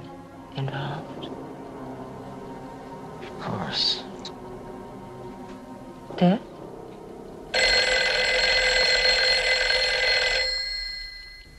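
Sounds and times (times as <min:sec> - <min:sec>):
speech: 0:00.6 - 0:01.4, 0:03.4 - 0:04.0, 0:06.2 - 0:06.5
telephone bell ringing: 0:07.6 - 0:11.5.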